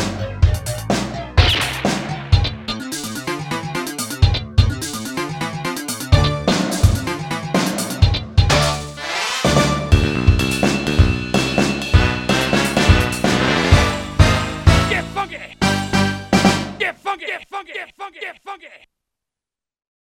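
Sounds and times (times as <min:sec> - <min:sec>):
funk music: 0:00.0 - 0:17.0.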